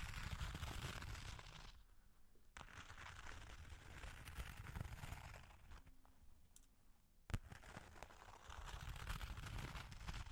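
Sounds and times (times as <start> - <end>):
long claws scratching: 0.0 - 1.8, 2.6 - 5.9, 7.5 - 10.3.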